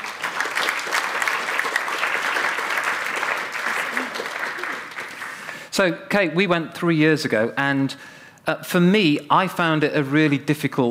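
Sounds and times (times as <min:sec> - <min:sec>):
audience applause: 0:00.0 - 0:05.7
speech: 0:05.8 - 0:10.8.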